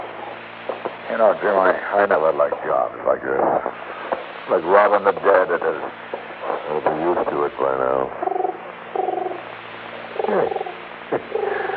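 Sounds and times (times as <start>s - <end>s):
speech: 1.1s - 6.1s, 6.7s - 8.3s, 10.3s - 10.6s
pigeon cooing at the window: 8.2s - 9.4s, 10.2s - 11.7s.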